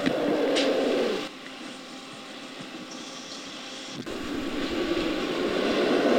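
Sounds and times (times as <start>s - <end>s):
king cobra growl, low-frequency rumble: 0.0s - 1.3s, 4.1s - 6.1s.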